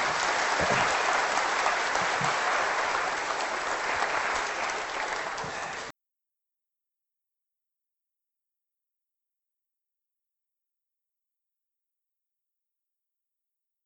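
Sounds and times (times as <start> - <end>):
audience applause: 0.0 - 5.9.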